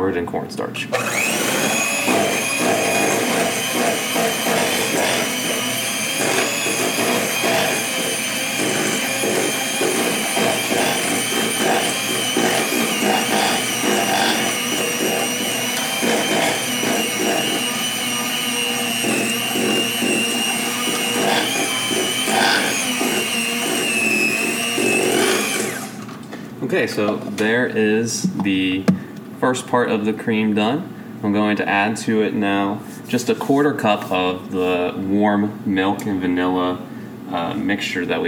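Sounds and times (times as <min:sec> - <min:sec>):
speech: 0:00.0 - 0:02.4, 0:26.7 - 0:38.2
hand mixer at full speed beating cream with cornstarch: 0:00.9 - 0:26.1.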